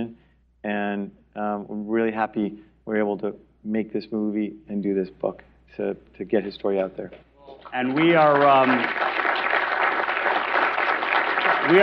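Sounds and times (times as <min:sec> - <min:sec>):
speech: 0:00.0 - 0:09.3, 0:11.7 - 0:11.8
audience applause at an event celebrating a film and book: 0:07.4 - 0:11.8.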